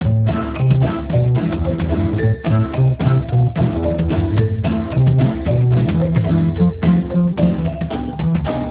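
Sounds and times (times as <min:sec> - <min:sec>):
music: 0:00.0 - 0:08.7.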